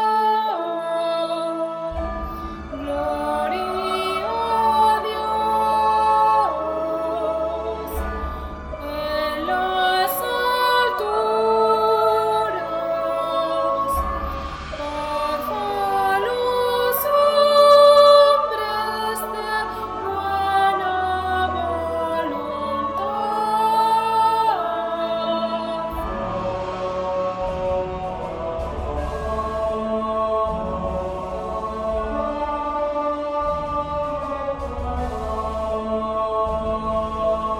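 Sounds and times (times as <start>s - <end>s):
soprano singing a hymn: 0.0s - 37.5s.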